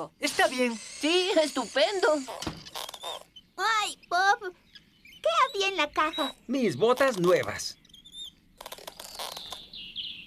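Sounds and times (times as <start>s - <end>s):
speech: 0.0s - 2.6s, 3.6s - 4.6s, 5.3s - 7.8s
high thin squeaks: 0.2s - 3.5s, 5.1s - 9.7s.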